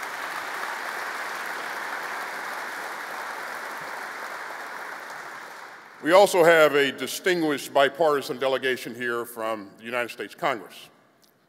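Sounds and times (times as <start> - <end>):
applause from a large crowd: 0.0 - 6.6
speech: 6.0 - 10.9.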